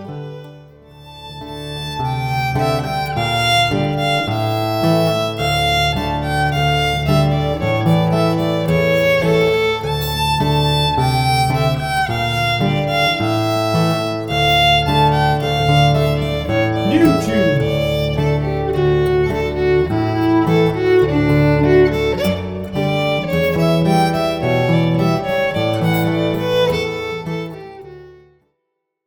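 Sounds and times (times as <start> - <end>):
play-along music sample: 1.5 - 27.7.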